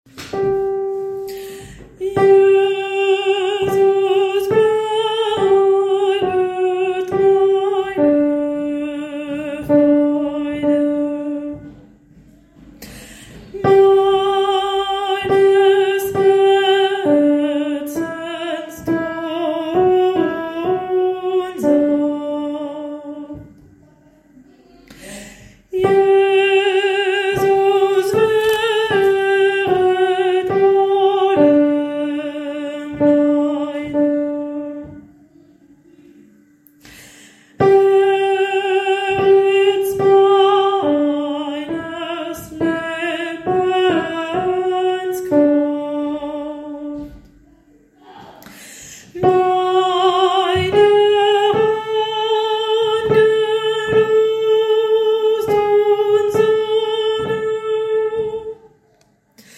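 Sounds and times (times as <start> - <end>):
alto part: 0.1 - 59.0.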